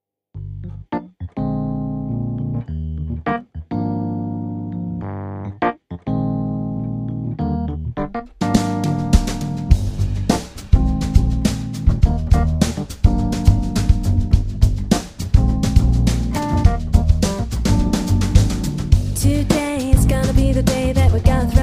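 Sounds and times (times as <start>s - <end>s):
pop jazz music: 0.7s - 21.6s.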